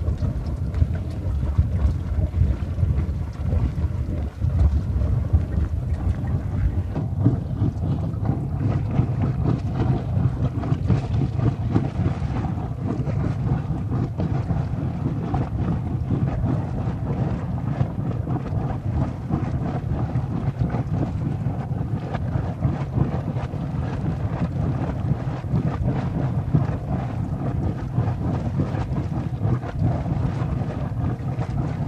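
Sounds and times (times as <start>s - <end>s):
geyser water splashing out: 0.0s - 16.1s
underground noise of a geyser: 0.0s - 31.8s.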